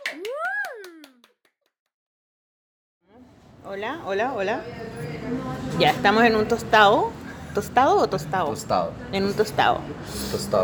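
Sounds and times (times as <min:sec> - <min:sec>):
swooping whoop-like tone: 0:00.0 - 0:01.2
rapid hand claps: 0:00.0 - 0:01.7
speech: 0:03.6 - 0:10.6.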